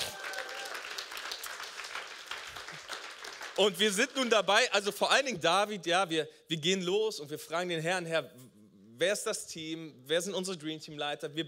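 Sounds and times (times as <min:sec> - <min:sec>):
crowd clapping: 0:00.0 - 0:04.8
speech: 0:03.6 - 0:11.4.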